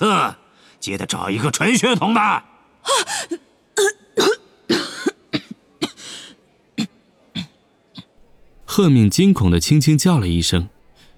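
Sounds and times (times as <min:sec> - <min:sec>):
speech: 0:00.0 - 0:04.8, 0:08.8 - 0:10.8
person feigning a weak cough: 0:03.8 - 0:06.0.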